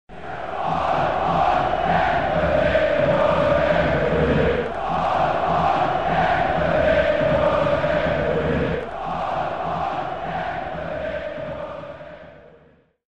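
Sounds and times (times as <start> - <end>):
crowd: 0.1 - 12.9.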